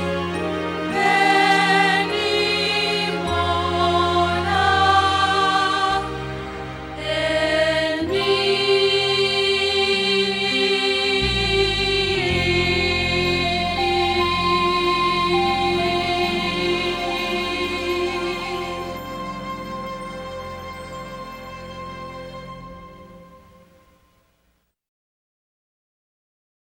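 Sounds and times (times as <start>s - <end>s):
contralto voice: 0.0s - 20.2s.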